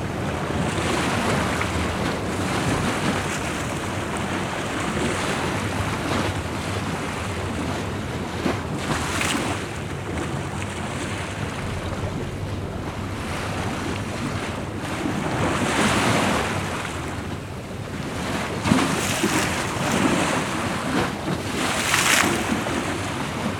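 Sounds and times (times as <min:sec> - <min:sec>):
high choppy tide of River Thames hitting the side walls at Greenland Dock: 0:00.0 - 0:23.5
planes coming and going from London City Airport: 0:09.7 - 0:18.0.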